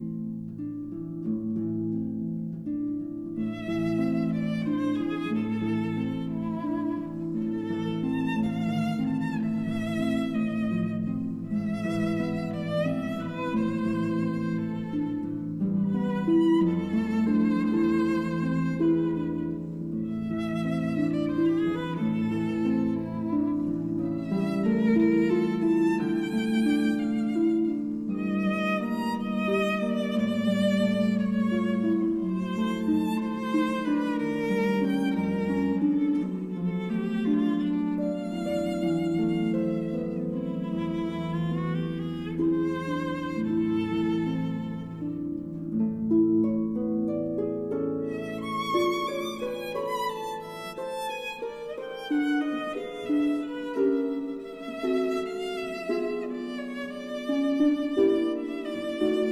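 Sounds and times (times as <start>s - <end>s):
berceuse for violin and harp: 0.0s - 59.3s.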